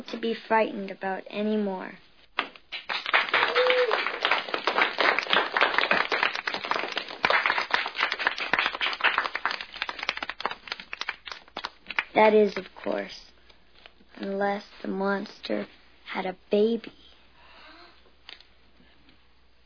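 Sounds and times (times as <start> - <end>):
speech: 0.0 - 2.0, 12.2 - 13.3, 14.2 - 17.0
crowd applauding and cheering: 2.7 - 11.7.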